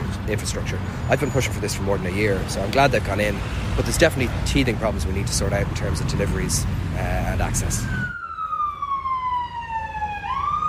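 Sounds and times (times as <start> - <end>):
low rumble of rush hour traffic in Kilmainham: 0.0 - 10.6
speech: 0.3 - 8.1
emergency siren wailing through rush hour traffic in Kilmainham: 7.1 - 10.6.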